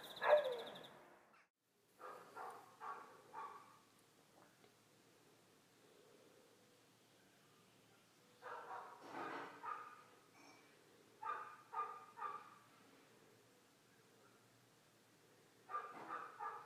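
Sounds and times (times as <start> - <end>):
dog barking: 0.2 - 0.7, 2.0 - 3.9, 8.4 - 9.0, 9.5 - 10.1, 11.2 - 12.7, 15.7 - 16.6.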